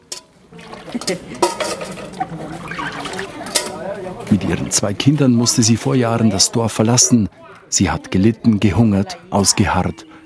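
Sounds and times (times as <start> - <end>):
stirring potatoes and pork in a large pot: 0.0 - 3.8
speech: 0.5 - 1.9, 4.2 - 10.2.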